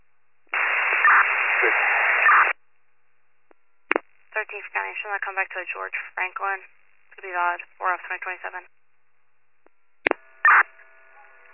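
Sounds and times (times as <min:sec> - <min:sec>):
radio static: 0:00.5 - 0:02.6, 0:03.9 - 0:08.7, 0:10.1 - 0:10.8
speech: 0:04.5 - 0:08.8.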